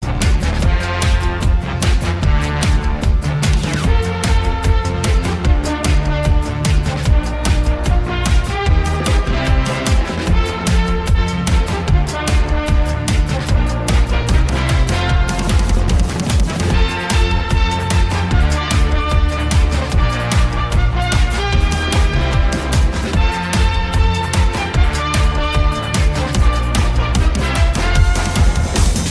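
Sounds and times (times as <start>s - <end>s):
brass instruments: 0.0s - 29.1s.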